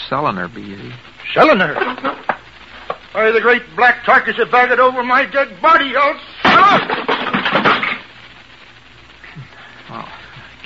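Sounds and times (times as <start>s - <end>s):
speech: 0.1s - 2.2s, 3.1s - 7.0s
wooden chair breaking: 6.4s - 8.1s
rattle and clatter of broken chair settling: 6.7s - 8.0s.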